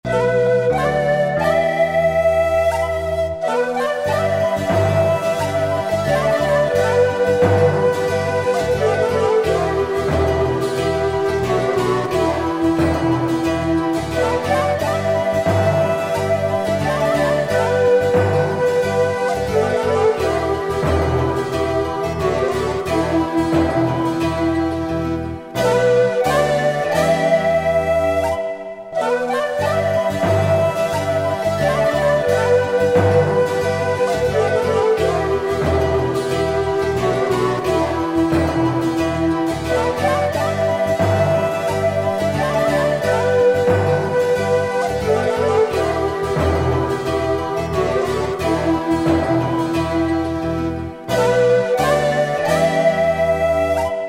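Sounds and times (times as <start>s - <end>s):
Andes folk music: 0.0s - 54.0s.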